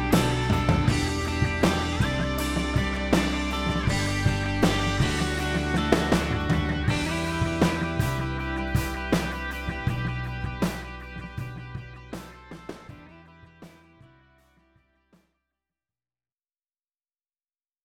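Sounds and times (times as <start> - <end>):
alternative pop mix: 0.0 - 12.8.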